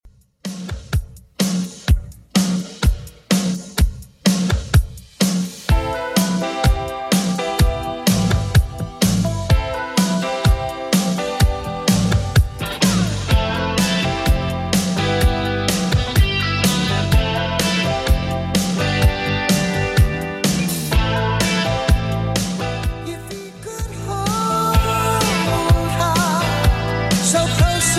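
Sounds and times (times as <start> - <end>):
80s Redrum drum machine beat: 0.0 - 27.9.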